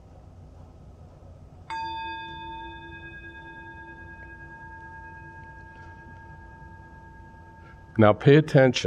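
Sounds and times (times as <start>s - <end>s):
gong: 1.7s - 8.8s
speech: 8.0s - 8.8s.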